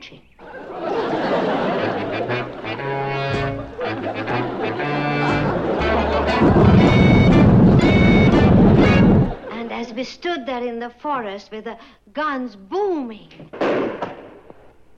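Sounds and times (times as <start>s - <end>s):
laughter: 0.4s - 9.8s
tractor engine running: 3.5s - 9.4s
speech: 10.8s - 14.1s.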